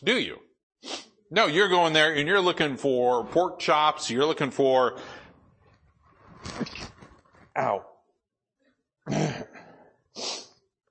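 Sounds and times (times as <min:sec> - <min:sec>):
speech: 0:00.0 - 0:05.2, 0:07.6 - 0:07.9
sneeze: 0:09.1 - 0:09.5.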